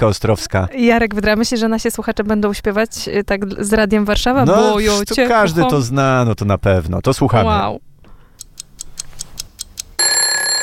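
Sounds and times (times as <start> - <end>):
speech: 0.0 - 7.9
clock ticking: 8.4 - 10.3
musical alarm clock ringing: 10.0 - 10.6.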